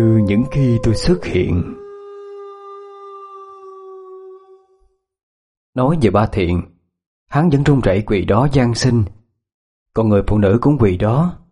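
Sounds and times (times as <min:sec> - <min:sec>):
speech: 0:00.0 - 0:01.8, 0:05.8 - 0:06.7, 0:07.3 - 0:09.2, 0:10.0 - 0:11.4
dogs in a village howling: 0:00.0 - 0:04.9.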